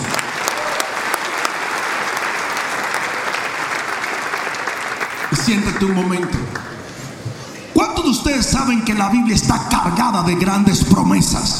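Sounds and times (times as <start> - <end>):
audience applause: 0.0 - 7.0
speech: 5.5 - 6.6, 8.3 - 11.5.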